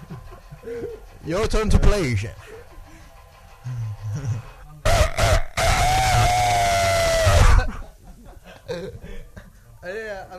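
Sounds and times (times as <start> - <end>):
laughter: 0.0 - 1.2, 2.3 - 4.6, 7.3 - 9.7
speech: 0.7 - 2.6
rooster crowing: 4.9 - 7.8.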